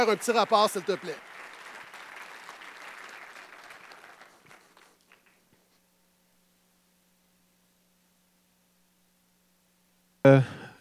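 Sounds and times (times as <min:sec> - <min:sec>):
speech: 0:00.0 - 0:01.4, 0:10.2 - 0:10.6
audience applause: 0:00.0 - 0:05.4.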